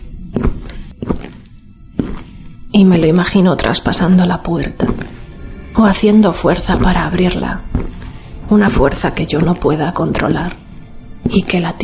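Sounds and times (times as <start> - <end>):
footsteps down a hallway: 0.3 - 2.5, 4.8 - 5.2, 6.7 - 10.3
speech: 2.8 - 5.2, 5.8 - 7.7, 8.5 - 10.6, 11.2 - 11.8.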